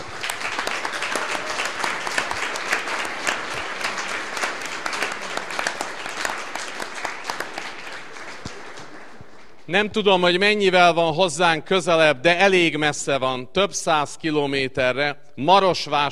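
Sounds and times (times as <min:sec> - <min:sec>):
audience applause: 0:00.0 - 0:09.7
speech: 0:09.7 - 0:16.0.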